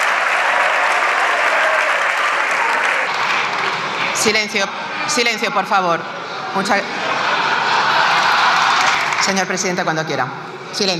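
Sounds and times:
audience applauding: 0:00.0 - 0:04.4, 0:07.4 - 0:09.4
speech: 0:04.2 - 0:07.1, 0:09.2 - 0:10.9
laughter: 0:06.2 - 0:09.3.

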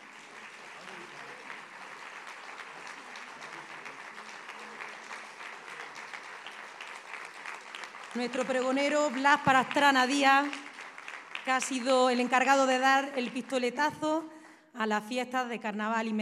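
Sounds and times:
audience applause: 0:00.0 - 0:12.4
speech: 0:08.2 - 0:10.7, 0:11.4 - 0:16.2.

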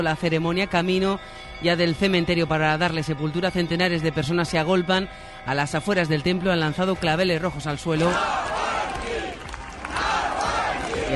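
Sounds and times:
speech: 0:00.0 - 0:08.6
crowd shouting chants at a funeral: 0:08.0 - 0:11.1.

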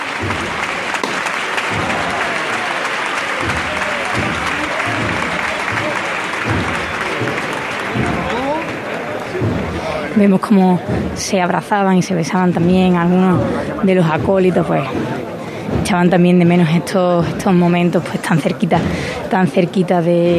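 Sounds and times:
street crowd applauding: 0:00.0 - 0:15.8
speech: 0:10.2 - 0:20.3.

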